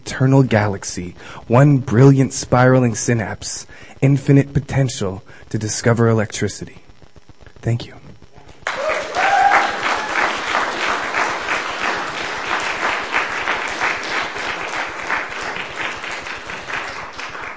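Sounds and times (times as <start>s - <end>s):
speech: 0.1s - 6.8s, 7.6s - 8.0s
audience applause for a poet after a poetry reading: 8.6s - 17.5s.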